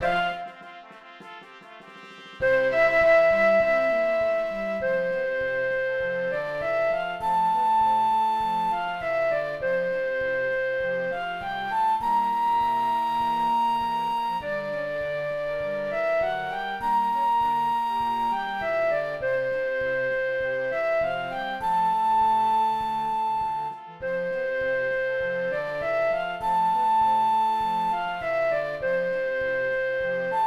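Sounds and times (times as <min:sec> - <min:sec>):
flute: 0:00.0 - 0:30.4.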